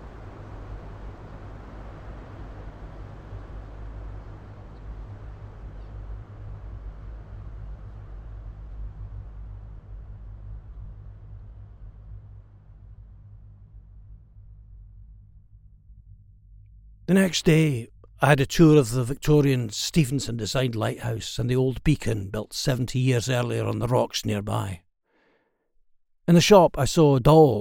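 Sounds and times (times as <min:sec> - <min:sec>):
boat engine powering back: 0:00.0 - 0:20.4
speech: 0:17.1 - 0:24.8, 0:26.3 - 0:27.5.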